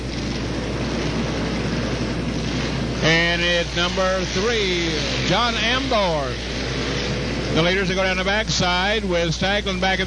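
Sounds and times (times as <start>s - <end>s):
racing lawn mower engines roaring during a heat race: 0.0s - 10.0s
speech: 3.5s - 6.9s, 7.6s - 10.0s.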